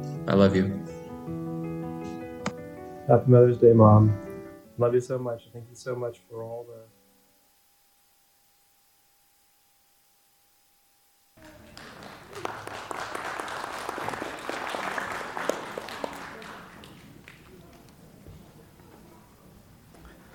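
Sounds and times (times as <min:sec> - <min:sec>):
speech: 0:00.2 - 0:01.0, 0:03.1 - 0:04.2, 0:04.8 - 0:06.9
audience hand claps: 0:11.4 - 0:18.1.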